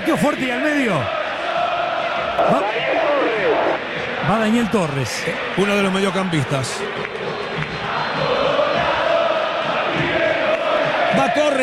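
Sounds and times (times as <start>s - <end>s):
speech: 0.1s - 1.2s, 2.4s - 7.7s
River Plate fans roaring in a football stadium: 0.1s - 11.6s.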